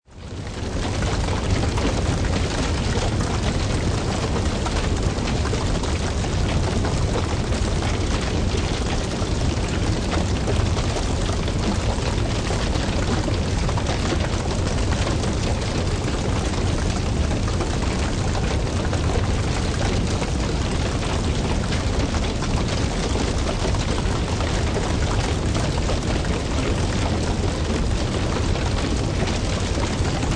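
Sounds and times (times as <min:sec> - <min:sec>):
crackling wood fire, wooden house burning down: 0:00.2 - 0:30.3.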